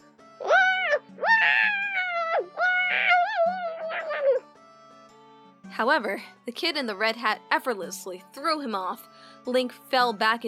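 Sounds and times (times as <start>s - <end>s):
squeaky wailing battle cry: 0.4s - 4.4s
speech: 5.8s - 10.4s.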